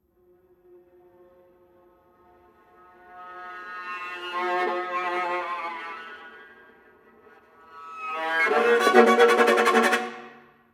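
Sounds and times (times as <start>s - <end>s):
viola: 3.1s - 10.6s.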